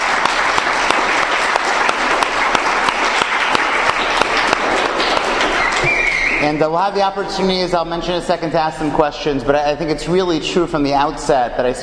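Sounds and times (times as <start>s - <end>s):
audience applause: 0.0s - 6.4s
speech: 6.5s - 11.8s.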